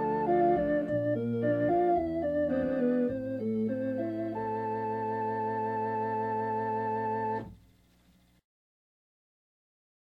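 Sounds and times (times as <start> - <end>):
pensive prelude: 0.0 - 7.6.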